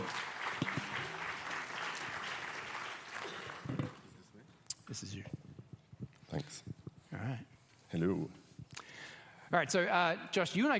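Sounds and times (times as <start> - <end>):
audience applause: 0.0 - 4.0
speech: 7.2 - 8.4, 9.5 - 10.7.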